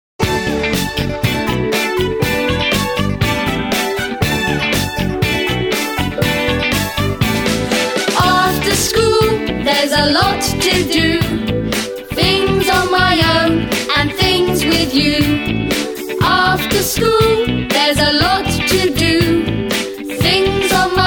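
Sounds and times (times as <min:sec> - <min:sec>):
karaoke singing: 0:00.3 - 0:21.0.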